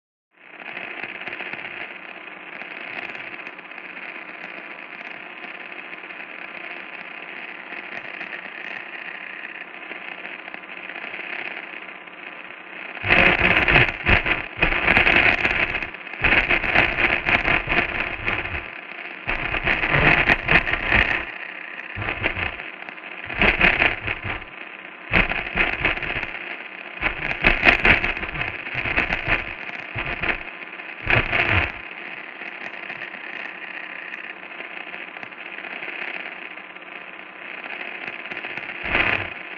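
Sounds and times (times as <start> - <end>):
radio static distortion: 12.9 - 35.0, 37.6 - 39.5.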